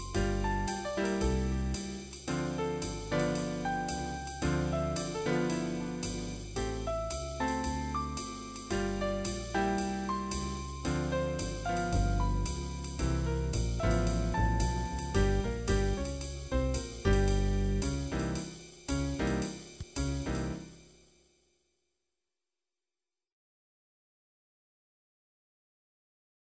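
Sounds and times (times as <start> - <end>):
jazz music: 0.0 - 20.8
drums: 0.0 - 21.0.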